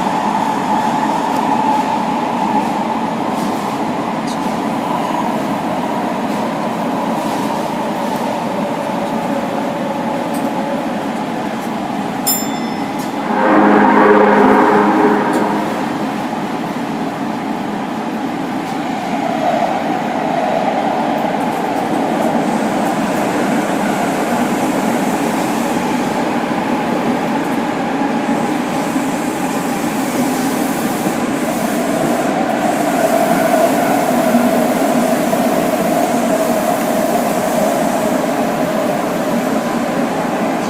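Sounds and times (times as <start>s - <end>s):
Osaka Imazatosuji line subway train running with a steady rumble: 0.0s - 40.6s
rushing noise: 13.1s - 17.1s
continuous mid-range droning tone of a subway train: 13.2s - 16.7s.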